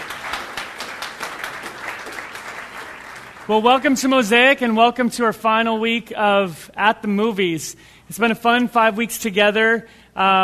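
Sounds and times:
audience applause: 0:00.0 - 0:03.9
speech: 0:03.5 - 0:10.4.

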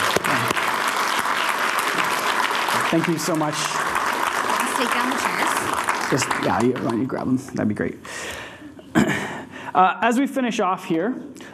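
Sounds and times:
crowd clapping: 0:00.0 - 0:07.7
speech: 0:02.9 - 0:03.8, 0:04.8 - 0:08.4, 0:09.8 - 0:11.4.

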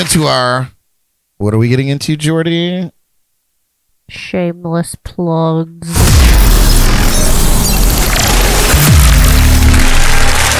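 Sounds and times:
speech: 0:00.1 - 0:00.8, 0:01.4 - 0:03.0, 0:04.1 - 0:06.4
low hum: 0:05.9 - 0:10.5
crowd cheering and applauding: 0:06.0 - 0:10.5.

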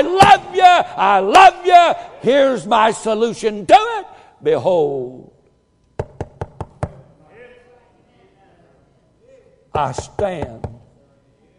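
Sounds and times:
speech: 0:00.0 - 0:05.3, 0:09.8 - 0:10.7
knocking on a church door: 0:06.0 - 0:07.0.

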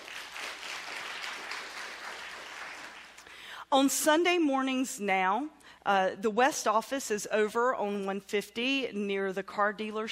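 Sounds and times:
crowd applauding: 0:00.0 - 0:03.4
speech: 0:03.7 - 0:10.0.

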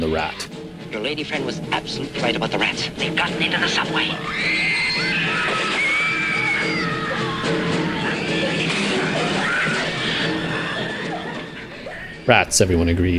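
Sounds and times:
speech: 0:00.0 - 0:05.2, 0:12.3 - 0:13.1
horror film trailer: 0:00.0 - 0:12.6
laughter: 0:01.7 - 0:12.5
screaming: 0:04.1 - 0:12.2.

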